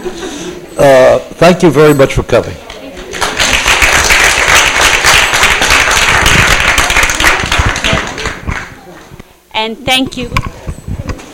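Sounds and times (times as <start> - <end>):
speech: 0.0 - 2.6, 9.6 - 10.5
audience clapping for a team: 3.1 - 8.9.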